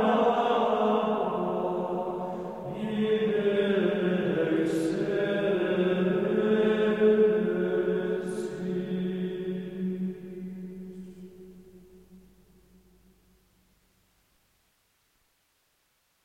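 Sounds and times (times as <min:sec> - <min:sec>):
monks choir singing Gregorian chant: 0:00.0 - 0:12.1.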